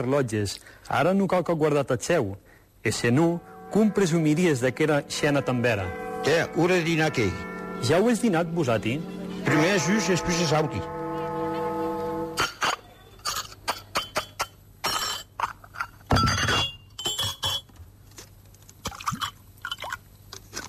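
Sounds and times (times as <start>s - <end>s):
speech: 0.0s - 11.0s
low steady hum: 0.0s - 20.6s
cutlery clinking against dishes: 12.4s - 17.7s.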